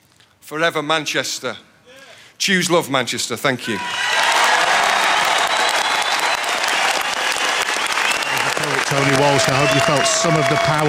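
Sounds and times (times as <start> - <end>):
speech: 0.5 - 1.7, 2.4 - 4.0, 8.9 - 10.8
crowd applauding in a square: 3.8 - 10.8.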